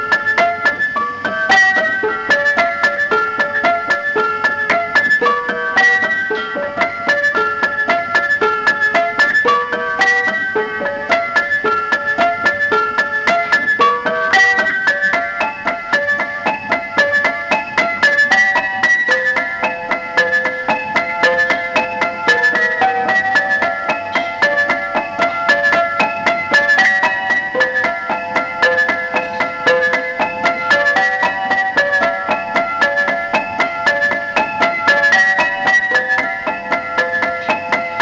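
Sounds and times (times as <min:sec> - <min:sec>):
wreckage piano: 0:00.0 - 0:38.0.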